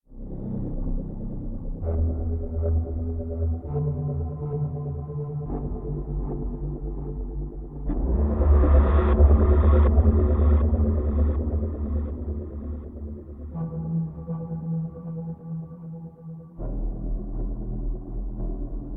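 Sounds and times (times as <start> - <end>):
glowing atmospheric background music: 0.1 - 18.9.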